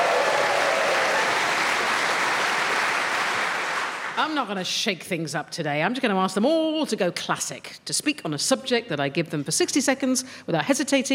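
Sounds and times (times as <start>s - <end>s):
scattered cheers: 0.0s - 3.6s
studio audience clapping: 0.0s - 4.4s
speech: 4.2s - 11.1s.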